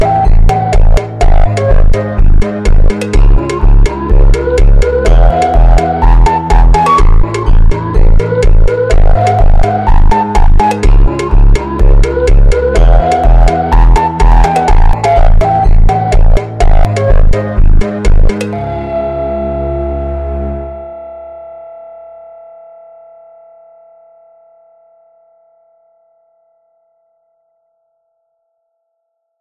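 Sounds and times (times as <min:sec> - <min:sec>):
slowed funk music: 0:00.0 - 0:21.6.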